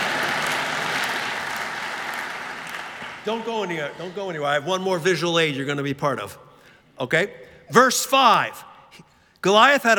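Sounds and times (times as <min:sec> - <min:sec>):
audience applause: 0:00.0 - 0:04.2
speech: 0:03.2 - 0:06.4, 0:07.0 - 0:09.9.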